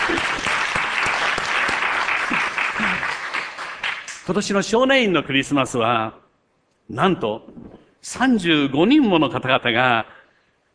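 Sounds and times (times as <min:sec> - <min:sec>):
audience applause of thanks at a Christmas gathering: 0:00.0 - 0:04.2
speech: 0:04.3 - 0:06.2, 0:06.9 - 0:10.2.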